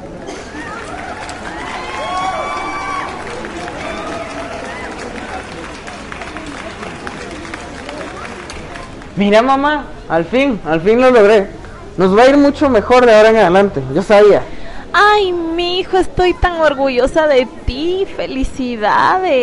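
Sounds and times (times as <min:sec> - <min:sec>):
applause for graduates: 0:00.5 - 0:09.3
speech: 0:09.2 - 0:19.4.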